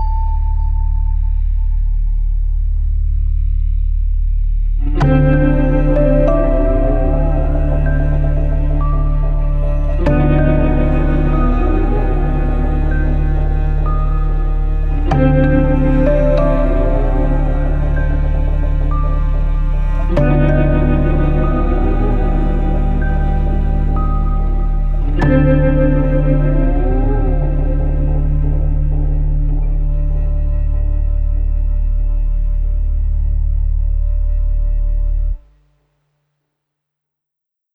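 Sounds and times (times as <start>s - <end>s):
atmospheric tension: 0.0s - 35.3s.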